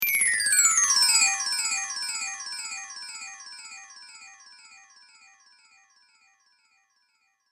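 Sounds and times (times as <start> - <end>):
wind chimes high to low with delay: 0.0 - 5.6.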